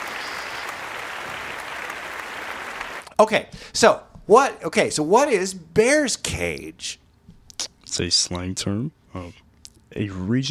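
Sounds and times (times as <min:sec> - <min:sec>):
applause: 0:00.0 - 0:03.2
speech: 0:03.2 - 0:07.0, 0:07.9 - 0:10.4.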